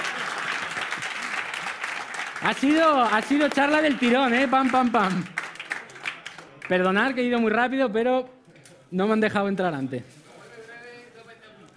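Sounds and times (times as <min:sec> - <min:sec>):
audience applause at the close of a talk: 0:00.0 - 0:06.7
speech: 0:02.4 - 0:05.4, 0:06.7 - 0:10.2.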